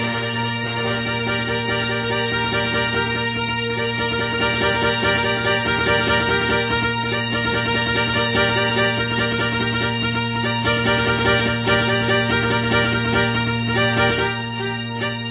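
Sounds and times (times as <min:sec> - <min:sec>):
classical music: 0:00.0 - 0:15.3.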